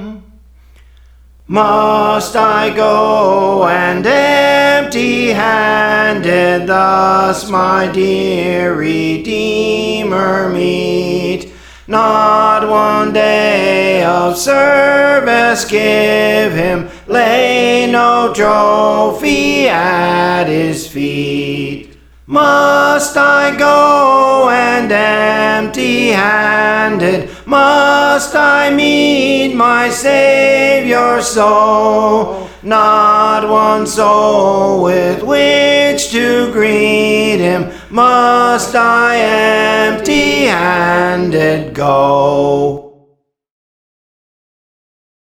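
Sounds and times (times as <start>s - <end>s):
soprano singing songs: 1.5s - 42.8s.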